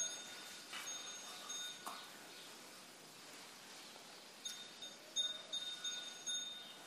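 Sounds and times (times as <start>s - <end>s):
meditation bell ringing: 0.0s - 2.0s, 4.4s - 6.8s.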